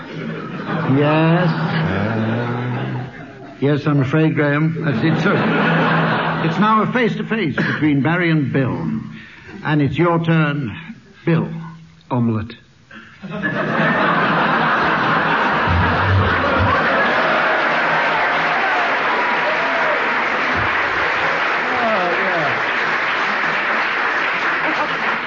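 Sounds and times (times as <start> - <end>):
scattered laughter: 0.0 - 3.6, 4.8 - 6.6, 13.2 - 18.2, 22.2 - 25.2
speech: 0.9 - 2.3, 3.6 - 5.8, 6.4 - 9.0, 9.6 - 12.6, 13.2 - 14.0
studio audience applause: 13.8 - 25.2.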